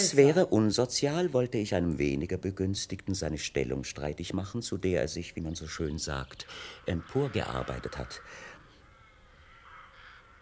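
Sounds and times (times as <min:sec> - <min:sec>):
speech: 0:00.1 - 0:08.5
ravens cawing: 0:06.5 - 0:10.4.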